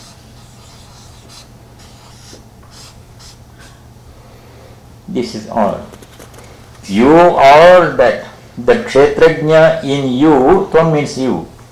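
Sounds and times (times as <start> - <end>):
writing words on a board: 0.0 - 3.8
low hum and hiss: 0.0 - 11.6
speech: 5.2 - 6.0, 6.9 - 11.5.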